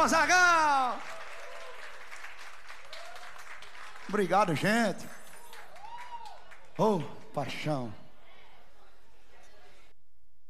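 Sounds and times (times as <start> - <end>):
speech: 0.0 - 1.1, 4.1 - 5.2, 6.8 - 8.0
audience applause at a live music show: 0.0 - 7.2.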